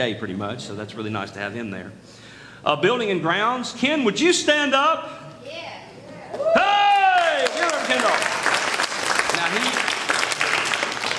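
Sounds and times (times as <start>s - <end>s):
speech: 0.0s - 5.7s
audience clapping: 6.9s - 11.1s.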